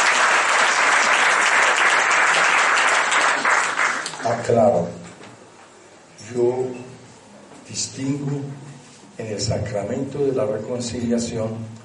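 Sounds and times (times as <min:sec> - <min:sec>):
audience applause: 0:00.0 - 0:04.4
speech: 0:04.3 - 0:05.0, 0:06.3 - 0:06.8, 0:07.7 - 0:11.8.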